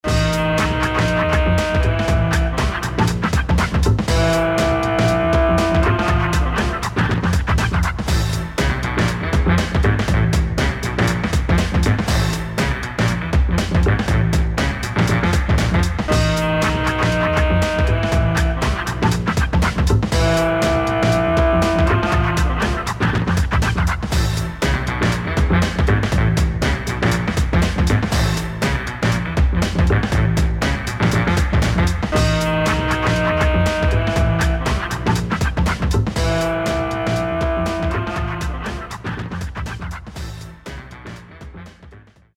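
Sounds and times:
disco dance music: 0:00.0 - 0:40.5.

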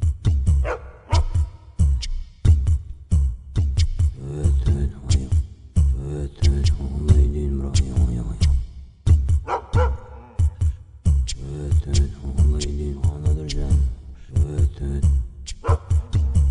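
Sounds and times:
happy village music: 0:00.2 - 0:16.4.

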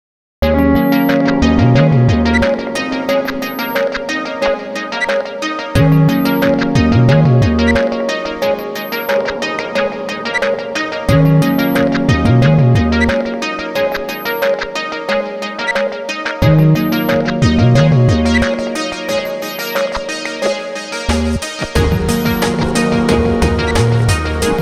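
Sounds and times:
end roll music: 0:00.8 - 0:24.5.

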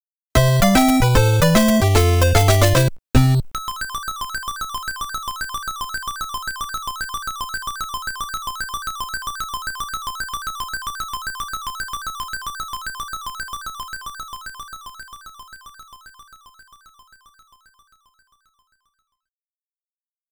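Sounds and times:
battle clear game music: 0:00.4 - 0:03.4.

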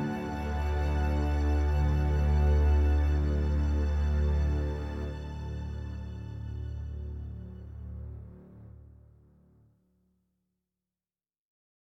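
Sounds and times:
triumphant music: 0:00.0 - 0:07.2.

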